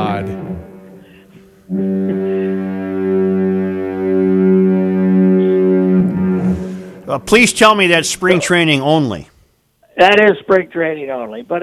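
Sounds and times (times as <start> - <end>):
Duluth double foghorn blast: 0.0 - 7.9
speech: 7.2 - 9.3, 10.0 - 11.6.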